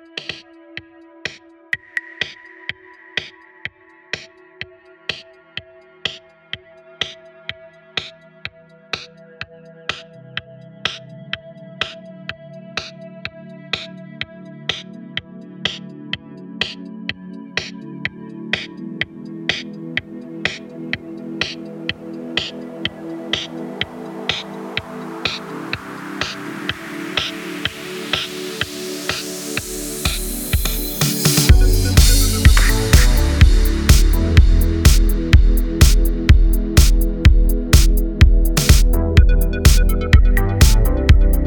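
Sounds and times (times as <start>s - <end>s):
smooth eighties music: 8.9s - 41.4s.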